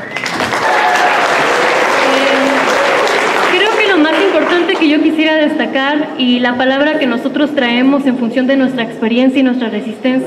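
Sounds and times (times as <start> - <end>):
audience applause: 0.0 - 5.2
speech: 5.2 - 10.2.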